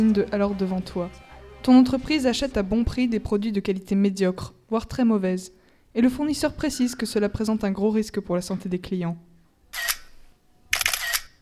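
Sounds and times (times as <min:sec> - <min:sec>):
speech: 0:00.0 - 0:09.8
phone camera shutter clicks: 0:09.7 - 0:11.4.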